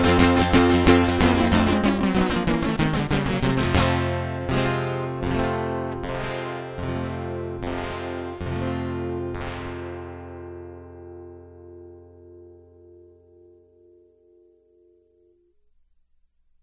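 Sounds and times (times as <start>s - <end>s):
guitar loop: 0.0s - 10.6s.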